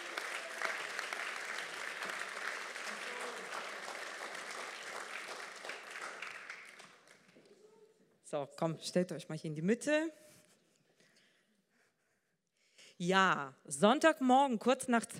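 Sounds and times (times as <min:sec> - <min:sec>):
audience applause: 0:00.0 - 0:07.4
speech: 0:08.3 - 0:10.2, 0:13.0 - 0:15.1.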